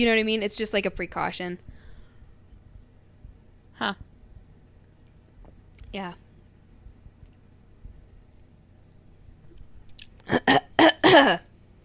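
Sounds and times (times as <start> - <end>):
speech: 0.0 - 1.7, 3.8 - 4.1, 5.9 - 6.2, 10.3 - 11.5
person coughing after choking: 10.3 - 11.5.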